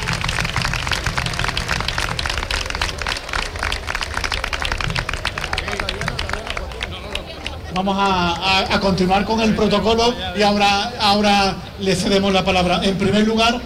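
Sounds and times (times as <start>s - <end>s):
audience applause: 0.0s - 7.8s
speech: 7.8s - 13.6s.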